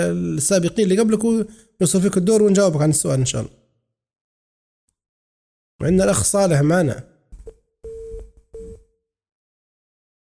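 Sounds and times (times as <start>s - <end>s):
speech: 0.0s - 3.6s, 5.8s - 7.1s
phone busy tone on a radio call-in show: 7.8s - 8.9s.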